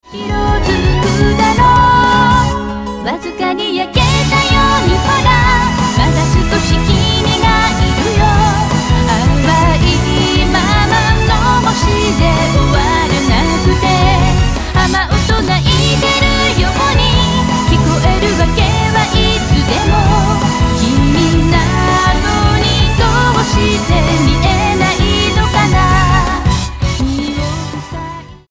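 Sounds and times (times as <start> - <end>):
music: 0.0 - 28.4.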